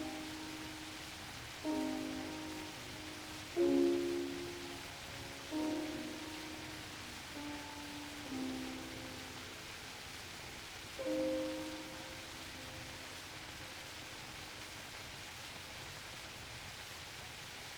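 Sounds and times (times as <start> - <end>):
prelude: 0.0 - 10.3, 11.0 - 14.1.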